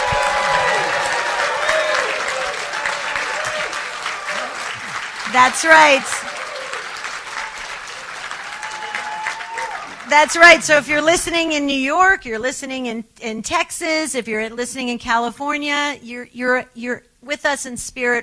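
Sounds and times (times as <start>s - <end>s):
shouts and cheers: 0.0s - 10.1s
banquet room audience applause: 0.0s - 10.9s
speech: 5.3s - 6.2s, 10.1s - 18.2s.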